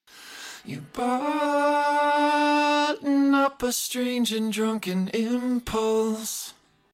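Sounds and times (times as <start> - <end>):
double-tracked vocals: 0.5 - 6.7.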